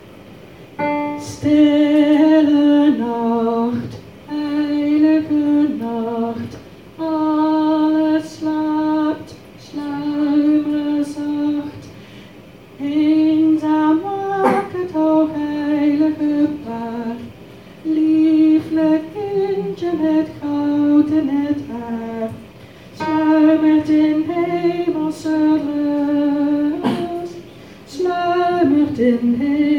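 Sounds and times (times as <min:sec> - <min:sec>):
alto singing a Christmas carol: 0:00.8 - 0:11.9, 0:12.8 - 0:29.7.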